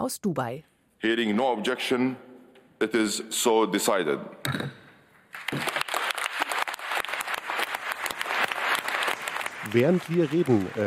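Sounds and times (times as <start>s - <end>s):
speech: 0.0s - 4.8s, 9.7s - 10.8s
applause in conference plenary: 5.3s - 10.8s.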